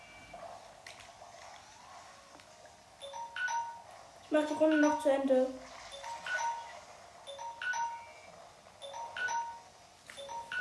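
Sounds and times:
timer alarm chiming: 0:03.0 - 0:03.9, 0:04.5 - 0:10.5
speech: 0:04.3 - 0:05.7.

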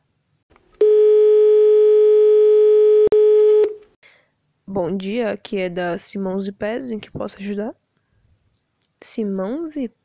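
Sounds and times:
telephone dial tone while placing a call to order something: 0:00.8 - 0:03.8
speech: 0:04.7 - 0:07.8, 0:09.0 - 0:10.0.

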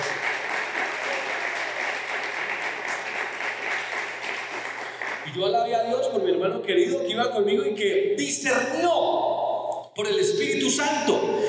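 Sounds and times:
crowd applauding: 0:00.0 - 0:05.4
speech: 0:05.4 - 0:09.4, 0:10.0 - 0:11.4.

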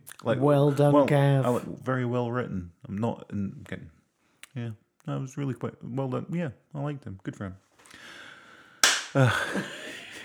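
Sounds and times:
speech: 0:00.2 - 0:08.1, 0:09.2 - 0:10.2
single hand clap: 0:08.8 - 0:09.7
laughter: 0:09.2 - 0:10.2.

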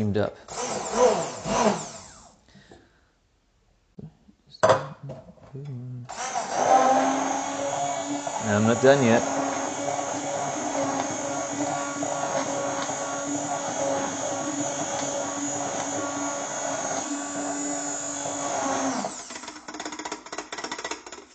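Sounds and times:
speech: 0:00.0 - 0:01.9, 0:08.5 - 0:09.4
blender running: 0:00.5 - 0:02.4, 0:06.1 - 0:20.4.

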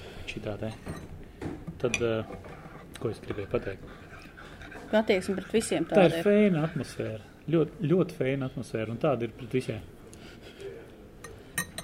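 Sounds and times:
speech: 0:00.4 - 0:01.2, 0:01.8 - 0:04.1, 0:04.9 - 0:09.9
spoon stirring sugar into coffee: 0:02.0 - 0:07.2.

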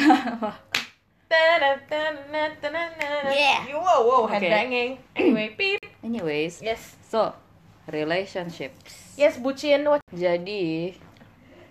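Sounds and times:
speech: 0:00.2 - 0:00.7, 0:01.3 - 0:11.1
hand clap: 0:00.7 - 0:01.0, 0:03.0 - 0:03.2.

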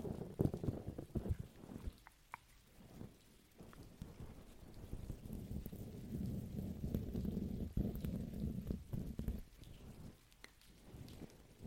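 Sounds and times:
raindrops tapping: 0:00.0 - 0:11.6.

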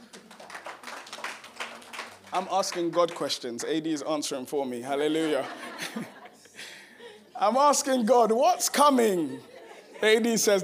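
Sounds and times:
audience clapping: 0:00.0 - 0:03.9
speech: 0:02.3 - 0:06.2, 0:07.4 - 0:10.6
laughter: 0:05.0 - 0:08.0, 0:08.7 - 0:10.6.

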